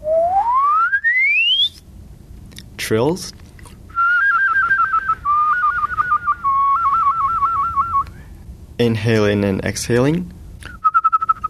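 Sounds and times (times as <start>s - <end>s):
human whistling glissando: 0.0s - 1.8s, 3.9s - 8.1s, 10.8s - 11.4s
speech: 2.8s - 3.4s, 8.8s - 10.4s.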